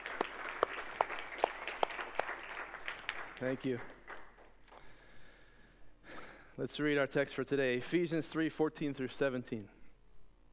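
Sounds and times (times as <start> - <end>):
audience clapping for fathers: 0.0 - 4.5
speech: 3.4 - 4.0, 6.6 - 9.8.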